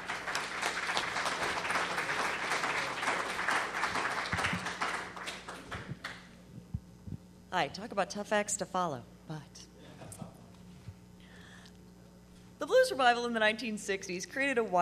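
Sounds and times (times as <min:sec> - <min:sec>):
audience applause welcoming a speaker at a conference: 0:00.0 - 0:06.4
speech: 0:07.6 - 0:09.6, 0:12.9 - 0:14.8.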